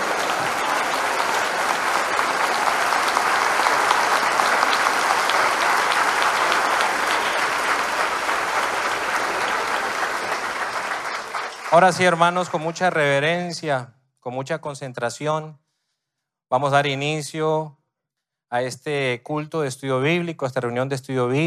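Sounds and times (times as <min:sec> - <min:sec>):
audience applause: 0:00.0 - 0:13.1
speech: 0:11.8 - 0:15.6, 0:16.5 - 0:17.8, 0:18.5 - 0:21.4.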